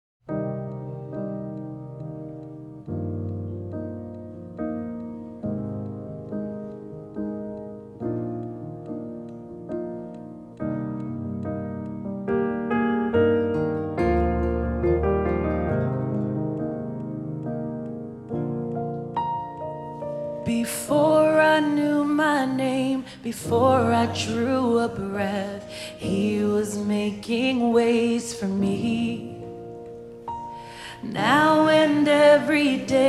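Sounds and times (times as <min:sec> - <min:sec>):
gospel music: 0:00.6 - 0:33.0.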